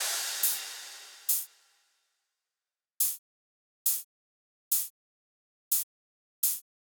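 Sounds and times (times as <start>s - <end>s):
riddim drum loop: 0.0s - 1.5s.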